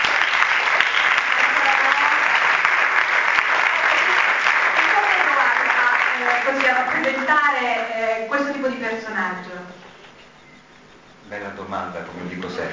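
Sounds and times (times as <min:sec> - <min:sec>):
audience applause: 0:00.0 - 0:07.4
speech: 0:07.3 - 0:09.8.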